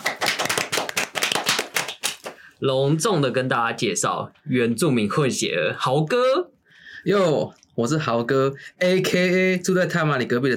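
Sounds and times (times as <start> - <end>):
hand clapping: 0.0 - 2.5
speech: 2.6 - 10.5.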